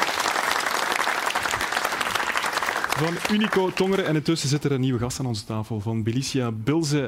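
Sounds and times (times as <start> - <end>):
audience applause: 0.0 - 4.2
speech: 3.0 - 7.0.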